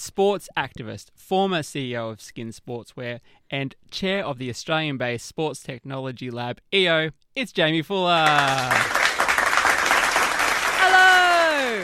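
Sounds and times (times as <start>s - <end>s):
speech: 0.0s - 9.0s
round of applause from audience: 8.2s - 11.8s.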